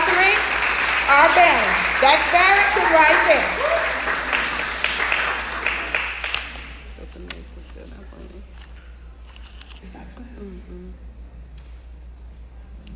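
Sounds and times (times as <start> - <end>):
audience clapping hands: 0.0 - 7.2
speech: 1.4 - 3.6.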